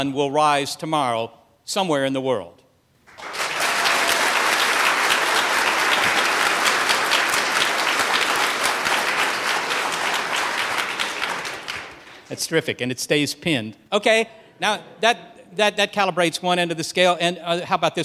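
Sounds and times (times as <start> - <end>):
speech: 0.0 - 2.6, 12.3 - 18.0
audience applause: 3.1 - 12.4.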